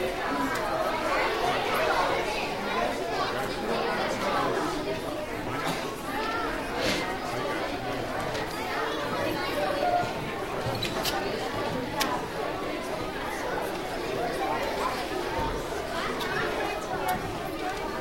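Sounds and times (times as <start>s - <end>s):
children entering a school auditorium: 0.0s - 18.0s.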